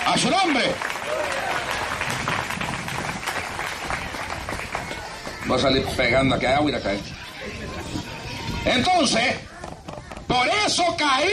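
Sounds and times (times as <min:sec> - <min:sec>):
audience applause: 0:00.0 - 0:06.0
speech: 0:00.1 - 0:01.3, 0:05.5 - 0:07.2, 0:08.6 - 0:09.5, 0:10.3 - 0:11.3
scattered voices: 0:03.8 - 0:11.3.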